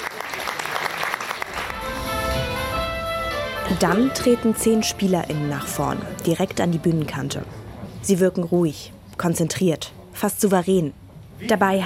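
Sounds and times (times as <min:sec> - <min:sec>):
audience applause: 0:00.0 - 0:03.6
tonal sounds: 0:01.5 - 0:07.9
speech: 0:03.7 - 0:11.8.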